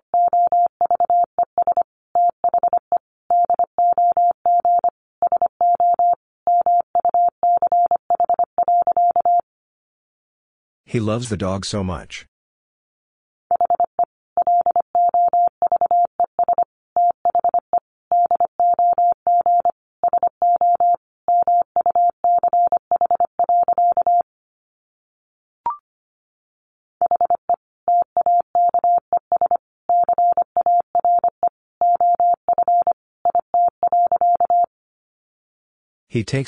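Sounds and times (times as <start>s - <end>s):
Morse code tone beeps at about 25 words per minute: 0.1s - 9.4s, 13.5s - 24.2s, 27.0s - 34.7s
speech: 10.9s - 12.3s, 36.1s - 36.4s.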